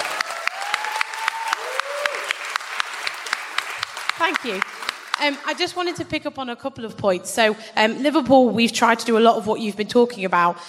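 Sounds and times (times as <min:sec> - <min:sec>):
audience applause: 0:00.0 - 0:05.6
speech: 0:04.2 - 0:10.6.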